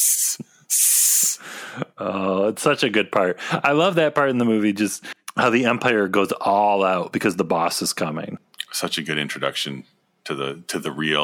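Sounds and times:
hissing recorded on a film set: 0.0 - 1.4
speech: 2.0 - 11.2.

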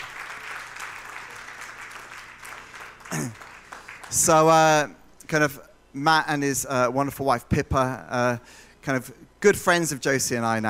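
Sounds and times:
audience applause welcoming a speaker to the stage: 0.0 - 4.3
speech: 3.1 - 3.4, 4.1 - 10.6.

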